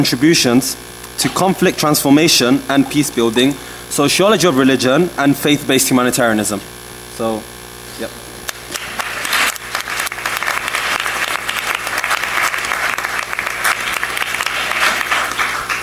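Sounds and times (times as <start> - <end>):
speech: 0.0 - 8.2
audience applause welcoming a speaker at a refugee crisis panel: 8.5 - 15.8.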